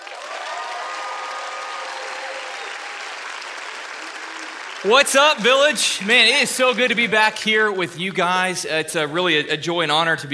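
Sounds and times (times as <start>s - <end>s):
church congregation applauding a returning guest speaker: 0.0s - 7.6s
speech: 4.8s - 10.3s.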